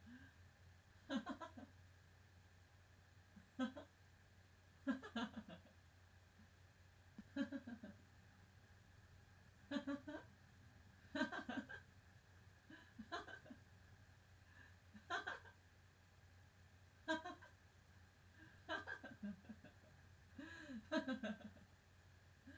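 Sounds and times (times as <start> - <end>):
quiet laughter: 0.0 - 0.4, 1.0 - 1.8, 3.4 - 4.0, 4.8 - 5.9, 7.1 - 8.1, 9.7 - 10.4, 11.0 - 12.0, 12.6 - 13.7, 14.5 - 15.7, 17.0 - 17.6, 18.3 - 21.8.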